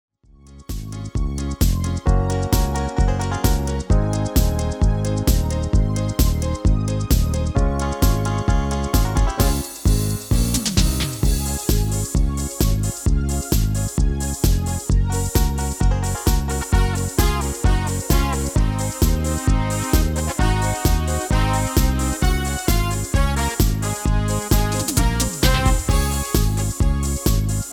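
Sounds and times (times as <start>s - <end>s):
MIDI music: 0.6s - 27.7s.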